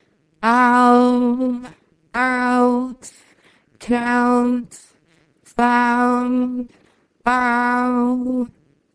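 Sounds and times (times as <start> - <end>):
person singing: 0.4 - 3.2, 3.8 - 4.9, 5.5 - 8.6.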